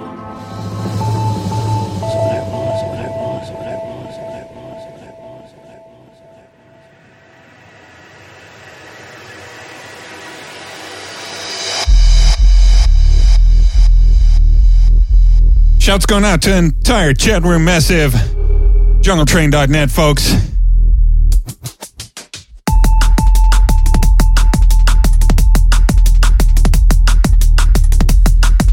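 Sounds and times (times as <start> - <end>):
brand new electronic music track: 0.0 - 20.6, 21.3 - 28.7
speech: 15.9 - 18.3, 19.0 - 20.5.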